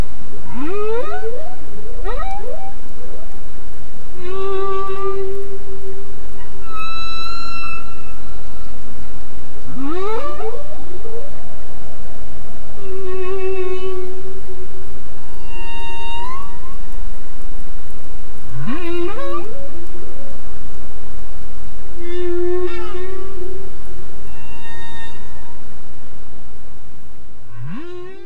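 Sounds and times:
continuous background hiss: 0:00.0 - 0:28.2
humpback whale song: 0:00.5 - 0:03.3, 0:04.2 - 0:08.9, 0:09.7 - 0:12.1, 0:12.8 - 0:14.5, 0:15.3 - 0:16.9, 0:22.0 - 0:23.6, 0:24.2 - 0:25.7, 0:27.5 - 0:28.2.

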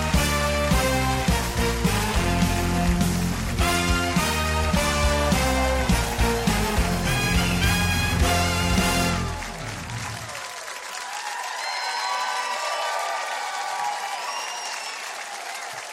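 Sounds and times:
band music: 0:00.0 - 0:10.3
TV talk-show studio audience applause: 0:00.0 - 0:15.9
studio audience cheers and whistles: 0:08.4 - 0:15.9.

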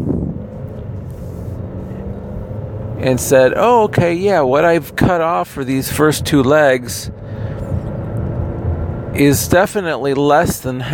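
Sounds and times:
car engine and road noise while driving: 0:00.0 - 0:10.9
speech: 0:03.0 - 0:07.2, 0:09.2 - 0:10.9.

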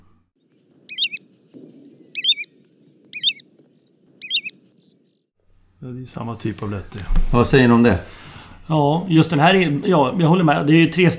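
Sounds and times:
American golden plover call: 0:00.9 - 0:01.3, 0:02.1 - 0:03.5, 0:04.2 - 0:04.6
speech: 0:05.8 - 0:11.1.

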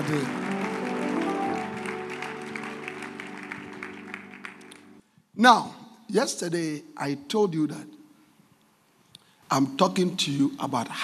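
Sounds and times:
church congregation clapping for the Lord after a prayer: 0:00.0 - 0:05.0
sustained musical chords: 0:00.0 - 0:05.0
speech: 0:00.1 - 0:00.4, 0:05.4 - 0:08.0, 0:09.5 - 0:11.0.

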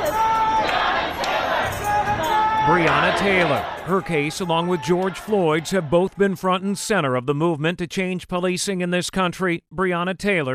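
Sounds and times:
crowd chanting a name: 0:00.0 - 0:06.1
speech: 0:02.7 - 0:10.5.

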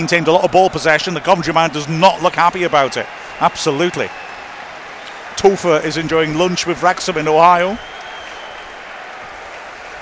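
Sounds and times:
speech: 0:00.0 - 0:04.3, 0:05.4 - 0:07.9
football crowd applauding: 0:00.0 - 0:09.9.

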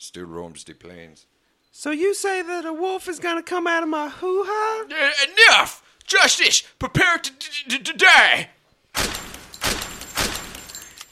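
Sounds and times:
speech: 0:00.0 - 0:09.1
gunshots: 0:09.0 - 0:10.8.

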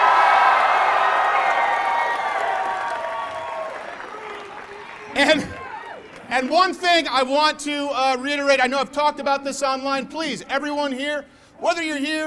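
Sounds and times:
crowd clapping and cheering: 0:00.0 - 0:07.1
speech: 0:05.2 - 0:05.5, 0:06.3 - 0:12.2.

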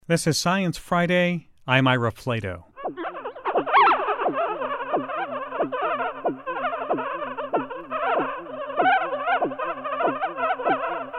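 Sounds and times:
speech: 0:00.1 - 0:02.7
brain activity during seizure sonified: 0:02.8 - 0:11.1.

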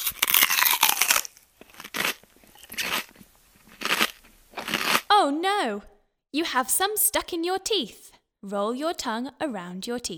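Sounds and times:
person chewing a huge mouthful of sweets: 0:00.0 - 0:05.1
speech: 0:05.2 - 0:10.1.

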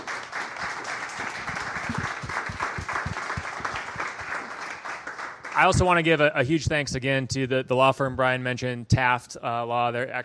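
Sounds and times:
audience round of applause: 0:00.0 - 0:05.9
speech: 0:05.6 - 0:10.2.

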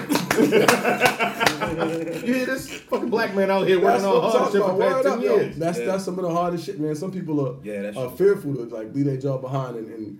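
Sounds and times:
hand claps: 0:00.0 - 0:02.0
voices talking and chuckling: 0:00.0 - 0:04.6
speech: 0:00.4 - 0:01.1, 0:01.7 - 0:10.1.

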